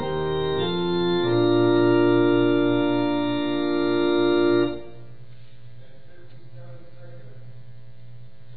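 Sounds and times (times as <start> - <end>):
hymn on organ: 0.0 - 5.2.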